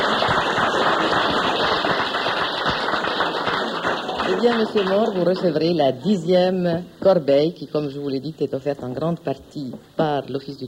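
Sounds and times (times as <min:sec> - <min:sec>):
audience applause: 0:00.0 - 0:05.6
speech: 0:04.4 - 0:10.6.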